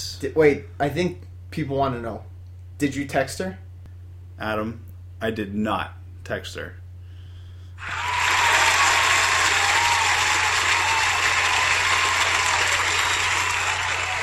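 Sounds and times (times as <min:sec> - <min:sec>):
speech: 0:00.2 - 0:03.6, 0:04.4 - 0:06.8
studio audience applause: 0:07.8 - 0:14.2.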